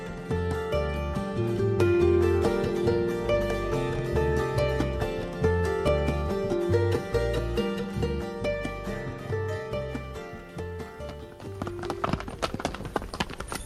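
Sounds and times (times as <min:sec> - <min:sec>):
music: 0:00.0 - 0:13.6
hooves of a horse-drawn carriage clattering over an 1853 London street: 0:09.3 - 0:13.6.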